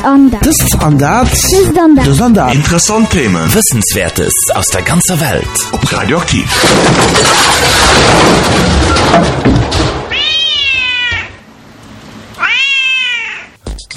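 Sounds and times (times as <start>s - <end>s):
speech: 0.0s - 10.0s
thud: 6.5s - 10.1s
cat meowing: 10.1s - 11.4s, 12.4s - 13.6s.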